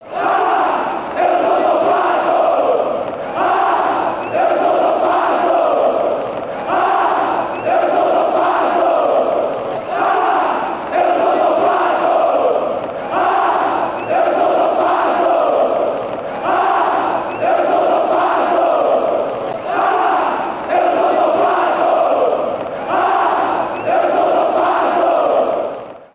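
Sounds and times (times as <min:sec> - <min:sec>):
fans chanting: 0:00.0 - 0:26.1.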